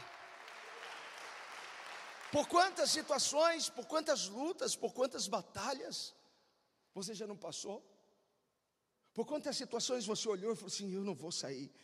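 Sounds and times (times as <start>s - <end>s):
audience applause: 0.0s - 2.9s
speech: 2.3s - 6.2s, 6.9s - 7.9s, 9.2s - 11.8s.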